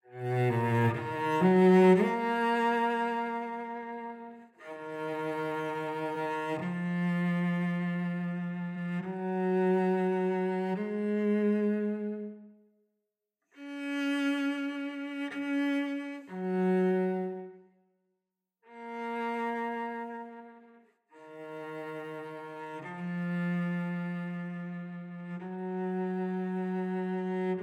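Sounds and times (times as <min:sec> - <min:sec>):
instrumental music: 0:00.0 - 0:12.9, 0:13.6 - 0:17.8, 0:18.6 - 0:27.6.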